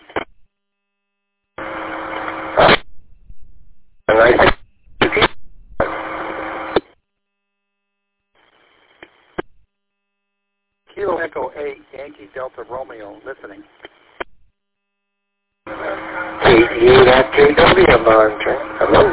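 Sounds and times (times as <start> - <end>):
broken-up amateur radio transmission: 0.0 - 0.3, 1.6 - 2.9, 4.1 - 7.0, 10.9 - 14.4, 15.7 - 19.1
speech: 11.4 - 13.9, 16.8 - 19.1.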